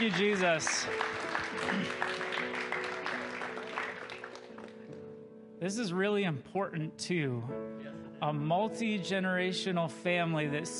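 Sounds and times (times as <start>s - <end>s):
speech: 0.0s - 2.7s, 5.6s - 10.7s
audience clapping: 0.0s - 5.0s.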